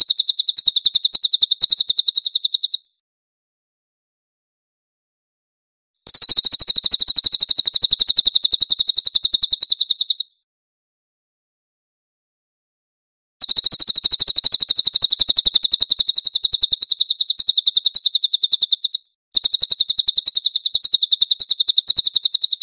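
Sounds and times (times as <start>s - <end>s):
Cililin bird giving a high chattering trill: 0.0s - 2.9s, 6.1s - 10.3s, 13.4s - 22.6s.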